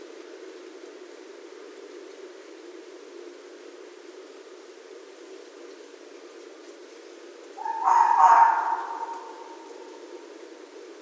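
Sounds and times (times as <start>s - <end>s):
red fox hoarse drawn-out cry: 7.6s - 9.8s.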